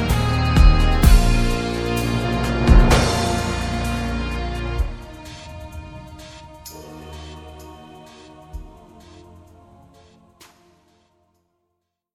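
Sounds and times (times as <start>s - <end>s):
slow string orchestra piece: 0.0s - 9.4s.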